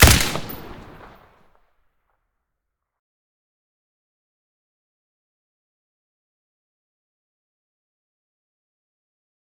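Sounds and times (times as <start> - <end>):
AK-103 rifle with silencer firing: 0.0 - 1.2.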